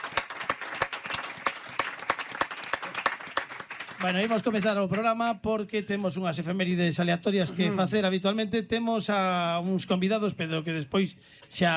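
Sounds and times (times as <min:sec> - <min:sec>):
audience applause: 0:00.0 - 0:04.8
speech: 0:04.0 - 0:11.7.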